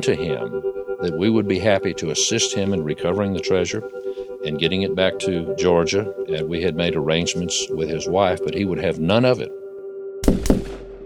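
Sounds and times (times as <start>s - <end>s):
speech: 0.0s - 9.6s
steady low tone: 0.0s - 11.0s
rifle gunshots: 10.2s - 11.0s.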